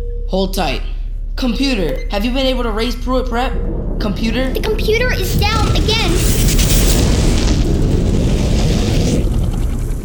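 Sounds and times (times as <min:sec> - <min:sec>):
speech: 0:00.3 - 0:06.6
explosion of water tank: 0:02.5 - 0:10.0.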